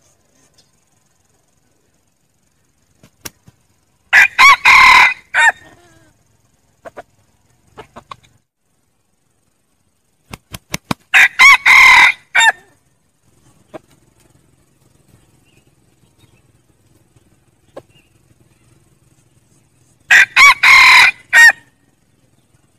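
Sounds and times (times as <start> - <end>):
red junglefowl crowing: 4.1 - 6.1, 11.1 - 12.8, 20.1 - 21.8.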